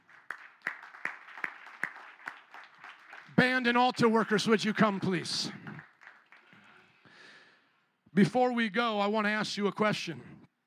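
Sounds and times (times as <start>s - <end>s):
crowd clapping in praise: 0.0s - 7.0s
speech: 3.4s - 5.6s, 8.2s - 10.3s.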